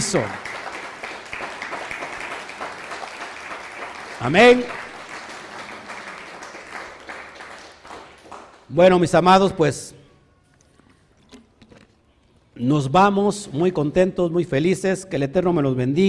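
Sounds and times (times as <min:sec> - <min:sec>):
audience applauding: 0:00.0 - 0:08.8
speech: 0:00.1 - 0:00.5, 0:04.2 - 0:04.8, 0:08.7 - 0:10.0, 0:12.6 - 0:16.0.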